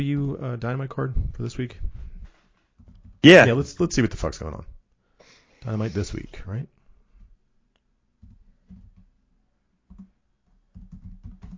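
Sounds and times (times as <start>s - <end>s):
speech: 0.0s - 2.0s, 3.2s - 4.8s, 5.6s - 6.8s
typing on a computer keyboard: 2.8s - 3.2s, 8.2s - 9.2s, 9.9s - 11.5s.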